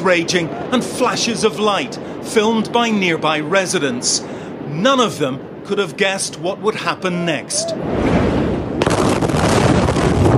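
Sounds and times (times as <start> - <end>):
speech: 0.0 - 8.2
low rumbling hiss: 0.0 - 10.0
massive explosion at a port: 7.7 - 10.3.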